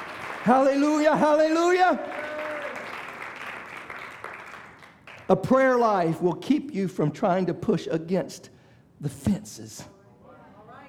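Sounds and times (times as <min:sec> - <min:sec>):
congregation clapping hands in praise during a church service: 0:00.0 - 0:05.8
speech: 0:00.4 - 0:02.2, 0:05.3 - 0:09.9.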